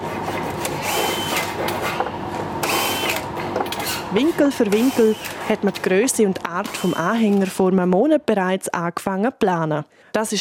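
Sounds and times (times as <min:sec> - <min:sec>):
power tools whirring and grinding while building a trailer: 0:00.0 - 0:05.5, 0:06.6 - 0:07.5
speech: 0:04.1 - 0:10.4.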